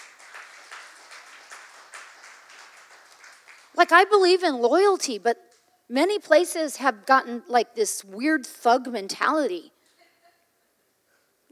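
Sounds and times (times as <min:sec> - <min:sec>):
crowd clapping: 0:00.0 - 0:04.4
speech: 0:03.8 - 0:09.8.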